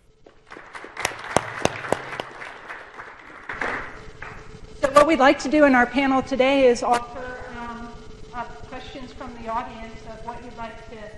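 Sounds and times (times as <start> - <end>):
audience applause welcoming a panellist at a technology panel: 0.3 - 4.4
speech: 5.0 - 7.2, 9.0 - 11.1.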